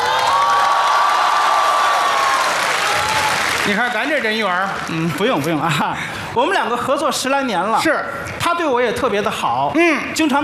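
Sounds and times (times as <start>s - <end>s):
large audience applause: 0.0s - 5.8s
speech: 3.7s - 10.4s.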